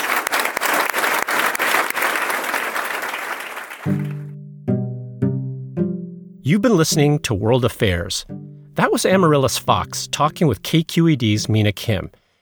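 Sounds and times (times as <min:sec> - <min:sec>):
audience applause at a public affairs talk: 0:00.0 - 0:04.3
sustained musical tones: 0:03.9 - 0:11.7
speech: 0:06.5 - 0:12.2.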